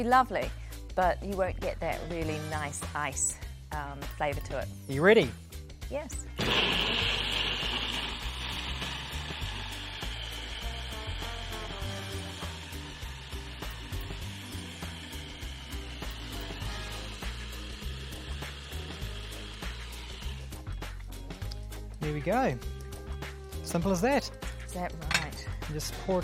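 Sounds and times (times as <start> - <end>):
speech: 0.0 - 7.0, 22.2 - 22.7, 23.7 - 25.1, 25.7 - 26.2
food processor blending frozen blueberries: 6.4 - 21.0.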